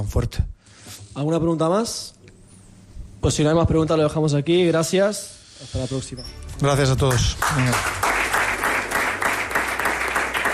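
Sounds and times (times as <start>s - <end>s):
speech: 0.0s - 2.2s, 3.2s - 8.0s
applause from people at a farewell press conference: 6.7s - 10.5s.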